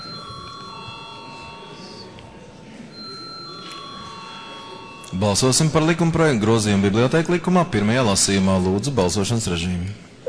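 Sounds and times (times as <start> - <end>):
parliament voting bell ringing: 0.0 - 7.6
low murmur of many voices: 0.0 - 10.2
speech: 5.1 - 10.1.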